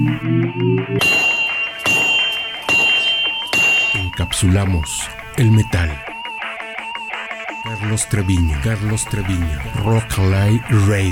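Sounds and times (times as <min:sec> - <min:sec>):
low rising hum: 0:00.0 - 0:01.0
speech: 0:00.1 - 0:01.0, 0:04.4 - 0:06.1, 0:07.6 - 0:11.1
forge hammer strikes: 0:01.0 - 0:04.8.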